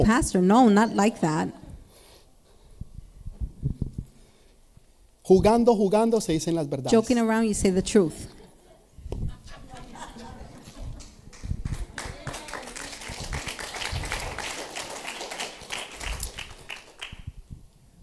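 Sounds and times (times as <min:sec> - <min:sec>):
speech: 0:00.0 - 0:01.6, 0:05.3 - 0:08.4
laughter: 0:08.3 - 0:12.6
audience applause: 0:10.6 - 0:17.3.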